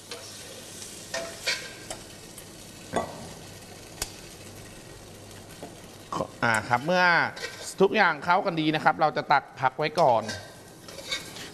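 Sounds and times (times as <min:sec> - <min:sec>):
shrimp sizzling as they are stir-fried in a pan: 0:00.0 - 0:08.2, 0:10.3 - 0:11.5
speech: 0:06.4 - 0:10.5
spatula scraping and clinking in a pan: 0:07.4 - 0:07.7, 0:10.1 - 0:11.5.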